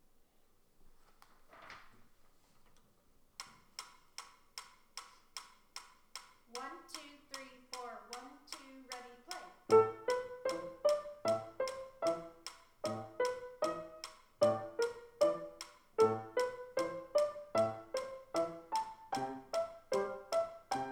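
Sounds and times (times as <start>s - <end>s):
classical duet: 6.5s - 20.8s.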